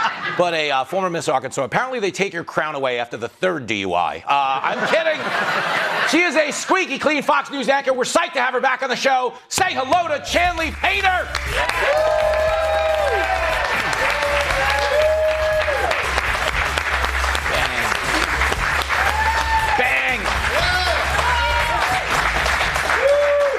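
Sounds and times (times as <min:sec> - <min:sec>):
laughter: 0:00.0 - 0:00.7, 0:04.4 - 0:06.7, 0:17.5 - 0:18.7
speech: 0:00.4 - 0:12.3
studio audience applause: 0:09.9 - 0:23.5
studio audience whoops and cheers: 0:11.5 - 0:16.1, 0:18.9 - 0:19.9, 0:20.5 - 0:22.1, 0:22.8 - 0:23.5.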